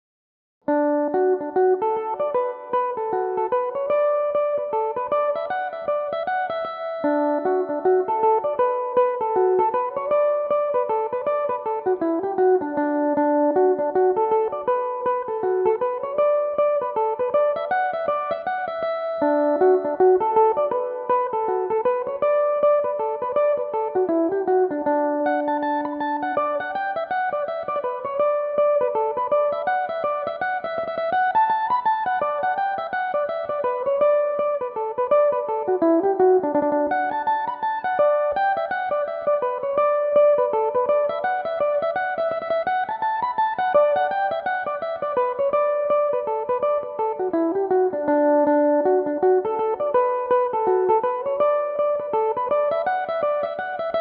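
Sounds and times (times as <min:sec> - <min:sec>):
Irish mandolin tunes in D major: 0:00.8 - 0:54.0.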